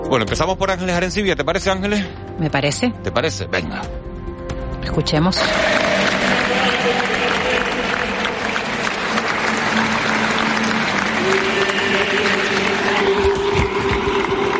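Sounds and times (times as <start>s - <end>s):
speech: 0.1s - 4.1s, 4.9s - 5.9s
large crowd applauding outdoors: 5.4s - 14.5s
murmuring voices: 5.4s - 14.5s.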